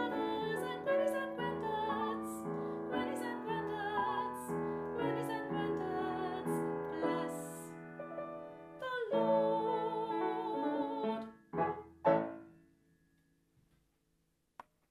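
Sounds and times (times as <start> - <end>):
person singing: 0.0 - 7.8, 8.8 - 11.3.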